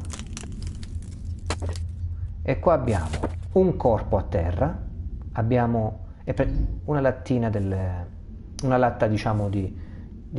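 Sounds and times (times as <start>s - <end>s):
wooden planks being broken: 0.0s - 1.9s
low rumble: 0.0s - 10.3s
speech: 2.4s - 4.8s, 5.4s - 10.3s.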